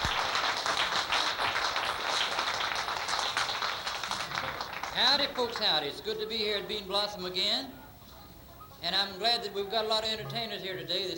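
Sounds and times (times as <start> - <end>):
crowd applauding: 0.0 - 6.8
speech: 5.0 - 7.8, 8.8 - 11.1.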